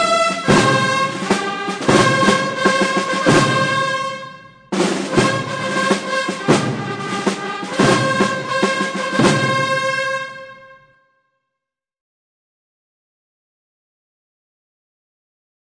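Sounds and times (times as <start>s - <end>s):
national anthem: 0.0s - 11.1s.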